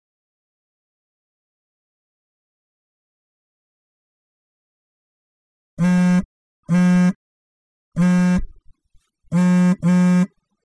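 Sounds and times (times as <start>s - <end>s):
buzzing sound: 5.8s - 7.2s, 8.0s - 8.6s, 9.3s - 10.4s.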